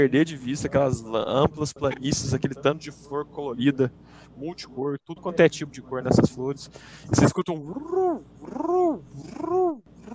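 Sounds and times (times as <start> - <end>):
speech: 0.0 - 9.8
voice imitating a pigeon cooing: 7.6 - 10.1.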